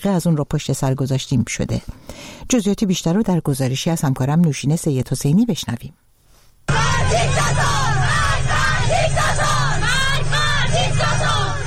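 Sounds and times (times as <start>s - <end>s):
speech: 0.0s - 6.0s
schoolgirls chanting slogans in unison: 6.7s - 11.6s.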